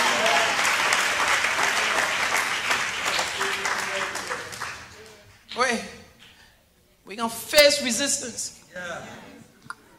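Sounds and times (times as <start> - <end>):
audience clapping hands: 0.0 - 6.4
speech: 7.2 - 9.3.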